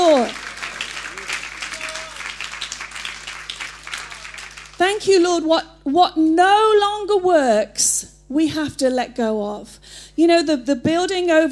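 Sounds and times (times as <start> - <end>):
audience applause: 0.0 - 5.0
speech: 4.8 - 11.4.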